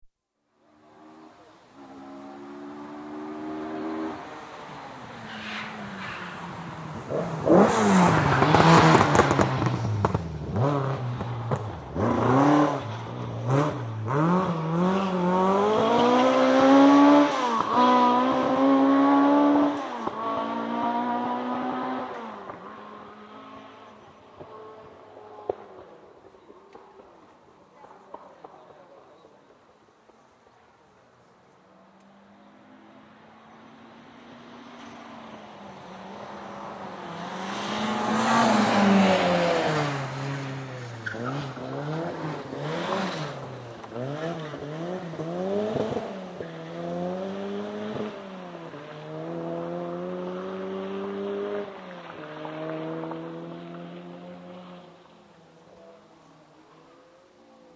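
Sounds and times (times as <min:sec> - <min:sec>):
rally cars racing through a chicane double turn: 0:00.7 - 0:29.6, 0:31.8 - 0:57.7.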